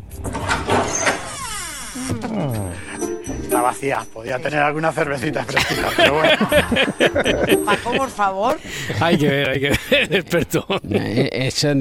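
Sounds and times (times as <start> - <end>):
refrigerator door creaking open: 0.0 - 2.6
speech: 2.0 - 11.7
laughter: 5.2 - 11.6.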